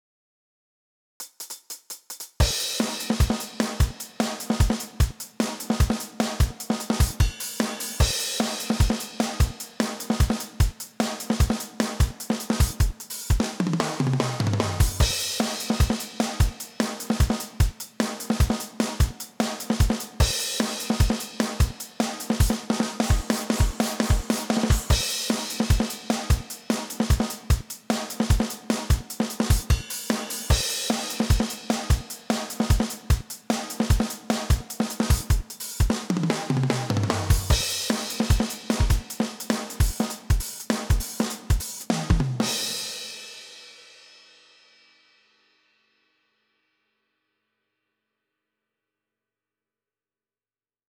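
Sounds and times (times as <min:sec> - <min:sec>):
drum: 0:01.2 - 0:43.6.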